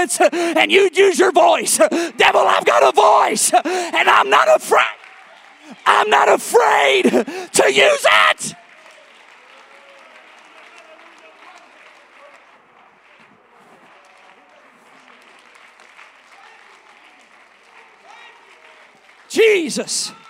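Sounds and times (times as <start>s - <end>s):
indistinct voices: 0.0s - 5.0s, 5.6s - 8.6s
speech: 0.0s - 5.0s, 5.7s - 8.6s, 19.4s - 20.2s
audience clapping: 0.0s - 20.2s.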